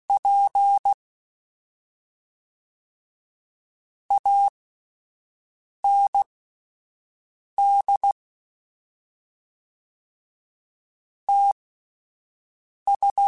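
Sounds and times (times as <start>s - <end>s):
Morse code beeps: 0.1s - 1.0s, 4.1s - 4.5s, 7.6s - 8.2s, 11.3s - 11.6s, 12.9s - 13.2s.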